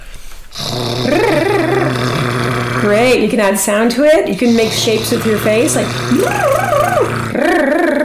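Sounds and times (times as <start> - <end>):
vocal warm-up lip trill: 0.6 - 2.9, 4.4 - 8.0
speech: 3.2 - 7.7.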